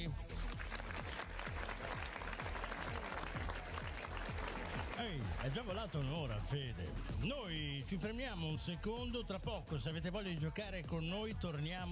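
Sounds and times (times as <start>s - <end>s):
speech: 0.0s - 0.3s, 5.0s - 11.8s
audience applause: 0.0s - 6.1s.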